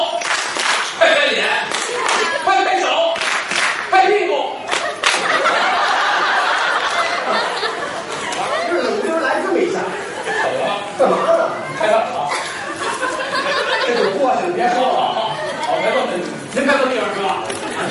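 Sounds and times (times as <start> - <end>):
audience clapping hands together: 0.2 - 1.0, 1.6 - 2.4, 3.1 - 3.9, 4.7 - 7.4
people chattering: 0.9 - 3.2, 3.9 - 17.8
people laughing: 1.8 - 2.9, 4.6 - 16.1, 17.4 - 17.8.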